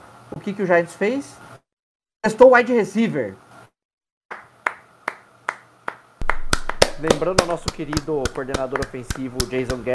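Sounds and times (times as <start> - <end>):
speech: 0.4 - 1.4, 2.2 - 3.4, 7.0 - 9.9
hand clapping: 4.3 - 9.9.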